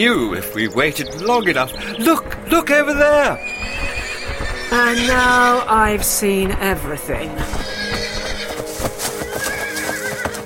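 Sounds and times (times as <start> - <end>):
speech: 0.0 - 4.0, 4.7 - 7.8
clip-clop hoofbeats: 0.0 - 10.4
Pegasus flying horse whinnying on grazing plains in Atlantis: 3.1 - 5.7, 7.4 - 10.4.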